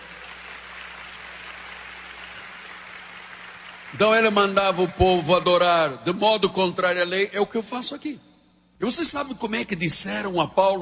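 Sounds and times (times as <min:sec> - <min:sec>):
audience applause: 0:00.0 - 0:05.0
speech: 0:03.9 - 0:10.8.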